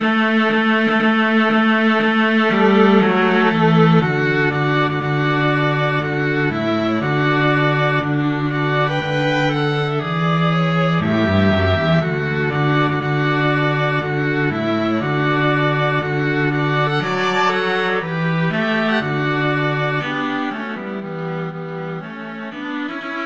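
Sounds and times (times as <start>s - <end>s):
string trio playing a march: 0.0s - 23.2s.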